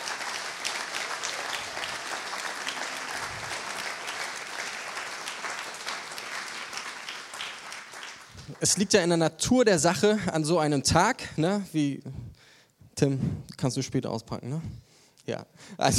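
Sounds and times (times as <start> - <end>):
audience applause: 0.0 - 8.9
speech: 8.5 - 12.2, 13.0 - 15.9.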